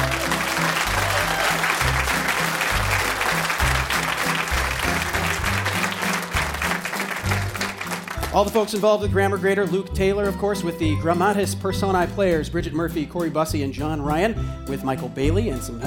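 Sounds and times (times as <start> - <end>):
audience applause for comedy performers of the Grammar Grader podcast: 0.0 - 8.7
speech: 8.4 - 15.8.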